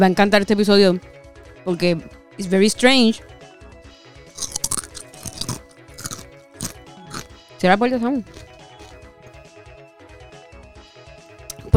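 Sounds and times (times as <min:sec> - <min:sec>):
speech: 0:00.0 - 0:03.3, 0:07.6 - 0:08.4
crunching potato chips: 0:04.4 - 0:07.3, 0:08.2 - 0:09.0.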